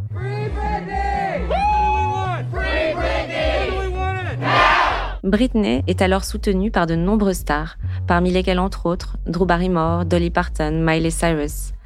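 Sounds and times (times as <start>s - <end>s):
protest crowd yelling: 0.2s - 5.2s
protest crowd chanting in rhythmic unison: 2.3s - 5.2s
speech: 5.3s - 11.8s.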